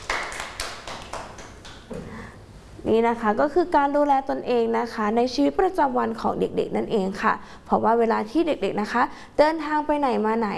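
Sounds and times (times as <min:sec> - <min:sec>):
children clapping: 0:00.0 - 0:01.9
speech: 0:02.9 - 0:10.5.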